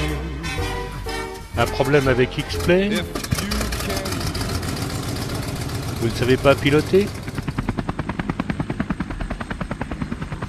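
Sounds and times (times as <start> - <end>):
helicopter engine drone: 0.0 - 10.4
speech: 1.6 - 4.1, 6.0 - 7.2
helicopter rotor thudding: 2.4 - 10.4.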